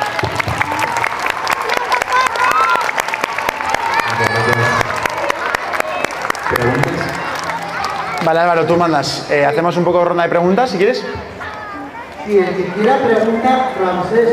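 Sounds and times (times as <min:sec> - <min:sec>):
audience applause: 0:00.0 - 0:09.6
speech: 0:08.3 - 0:11.4, 0:12.3 - 0:14.3.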